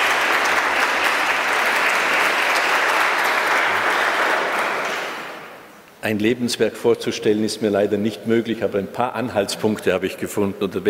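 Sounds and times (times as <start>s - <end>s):
audience clapping in a church: 0.0s - 5.6s
speech: 6.0s - 10.8s.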